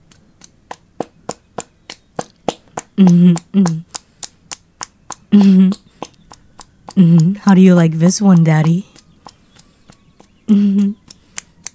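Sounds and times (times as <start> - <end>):
buttocks clapping together: 0.0 - 11.7
drawn-out vocal moans: 3.0 - 3.9, 5.3 - 5.9, 7.0 - 7.5
speech: 3.0 - 3.9, 5.3 - 5.8, 7.0 - 8.9.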